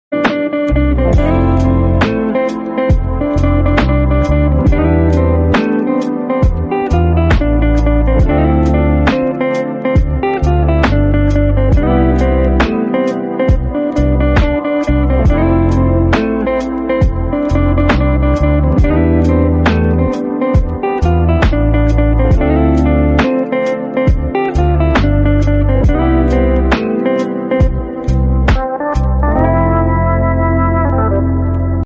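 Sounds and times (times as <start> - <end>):
instrumental background music: 0.1 - 31.8.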